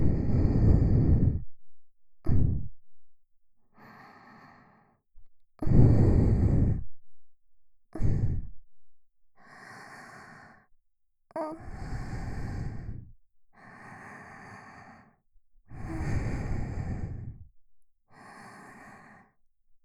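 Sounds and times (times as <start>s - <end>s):
sweet breathing loop: 0.0s - 1.6s, 2.3s - 2.8s, 3.8s - 5.0s, 5.6s - 6.9s, 7.9s - 8.6s, 9.4s - 10.7s, 11.3s - 17.5s, 18.1s - 19.4s.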